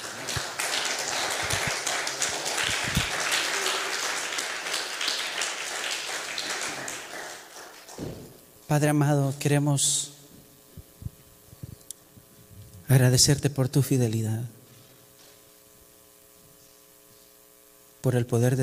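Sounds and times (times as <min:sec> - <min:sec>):
audience applause: 0:00.0 - 0:08.2
speech: 0:08.7 - 0:10.1, 0:12.9 - 0:14.6, 0:18.0 - 0:18.6.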